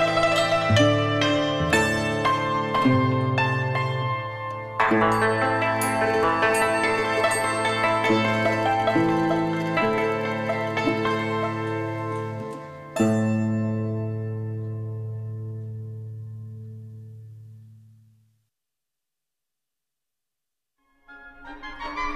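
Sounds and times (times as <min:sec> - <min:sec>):
traditional Chinese music: 0:00.0 - 0:14.4, 0:21.1 - 0:22.1.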